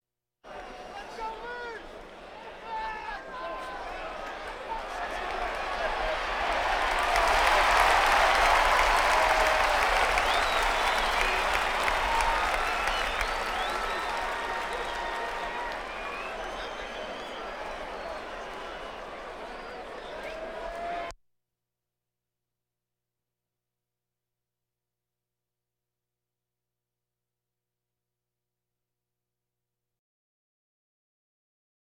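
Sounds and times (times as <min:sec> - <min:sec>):
crowds: 0:00.5 - 0:21.1.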